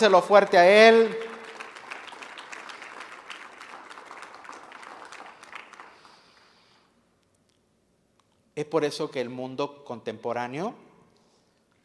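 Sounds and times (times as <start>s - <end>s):
speech: 0.0s - 1.2s, 8.6s - 10.9s
audience applauding: 0.5s - 6.6s.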